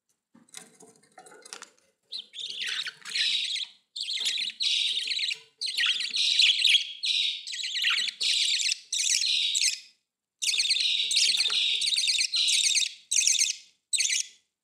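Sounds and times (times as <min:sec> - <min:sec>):
budgerigar chattering: 0:02.1 - 0:09.8, 0:10.4 - 0:14.2.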